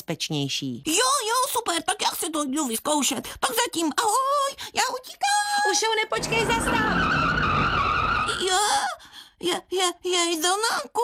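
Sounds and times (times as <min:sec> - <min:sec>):
speech: 0:00.1 - 0:07.0, 0:08.5 - 0:11.0
car tire screech on a road near a pedestrian crossing: 0:06.1 - 0:08.8
car engine roar: 0:06.2 - 0:08.3.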